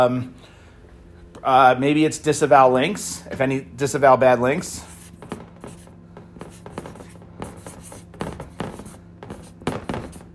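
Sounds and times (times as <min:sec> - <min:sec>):
speech: 0:00.0 - 0:00.5, 0:01.4 - 0:05.4
pen scratching across paper writing notes: 0:04.9 - 0:10.3.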